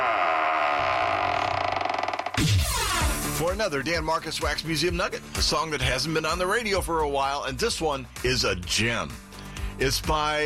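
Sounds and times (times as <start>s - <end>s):
heavy vault door groaning open with metallic creak: 0.9s - 3.2s
speech: 3.4s - 9.2s, 9.8s - 10.4s.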